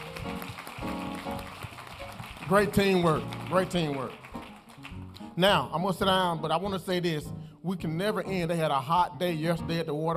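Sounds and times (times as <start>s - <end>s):
audience applause: 0.0s - 5.2s
speech: 2.5s - 4.2s, 5.4s - 10.1s.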